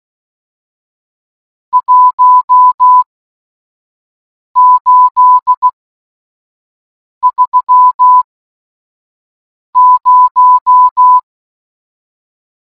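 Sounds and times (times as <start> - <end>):
morse code beeps: 1.8 - 3.1, 4.6 - 5.7, 7.2 - 8.2, 9.8 - 11.2.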